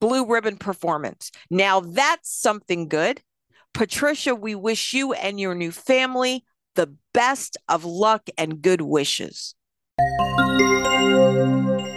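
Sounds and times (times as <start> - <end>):
speech: 0.2 - 11.9
bells ringing: 10.0 - 11.9.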